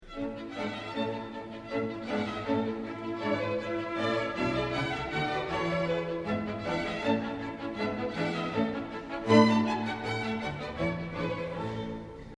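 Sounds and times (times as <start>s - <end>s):
classical concerto: 0.0s - 12.3s.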